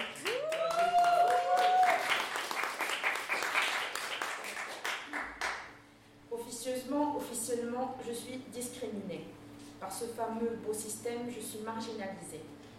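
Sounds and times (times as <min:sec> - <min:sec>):
audience cheering: 0:00.0 - 0:03.4
audience applauding a performer taking the stage: 0:00.0 - 0:05.8
person whooping: 0:00.1 - 0:02.3
speech: 0:07.8 - 0:12.6.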